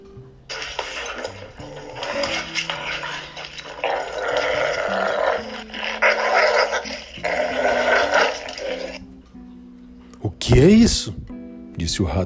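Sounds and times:
dogs growling: 0:00.5 - 0:09.1
speech: 0:10.5 - 0:11.2, 0:11.8 - 0:12.2.

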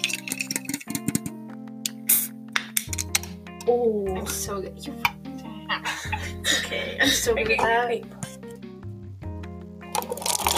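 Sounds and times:
drink being poured: 0:00.0 - 0:01.3, 0:09.9 - 0:10.5
speech: 0:03.7 - 0:08.3.

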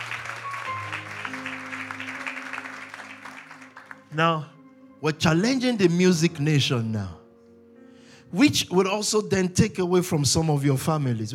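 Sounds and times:
audience clapping: 0:00.0 - 0:04.2
speech: 0:04.1 - 0:07.2, 0:08.3 - 0:11.3.

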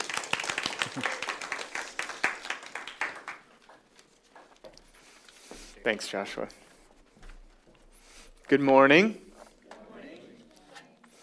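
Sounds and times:
church audience clapping to welcome a guest preacher: 0:00.0 - 0:04.3
speech: 0:01.0 - 0:01.2, 0:05.8 - 0:06.6, 0:08.5 - 0:09.2.

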